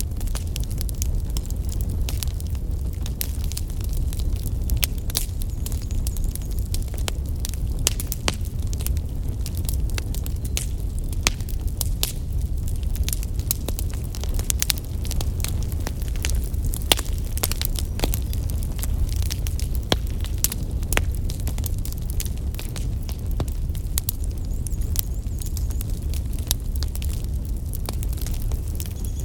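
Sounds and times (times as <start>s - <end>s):
daytime bonfire in a forest: 0.0s - 29.2s.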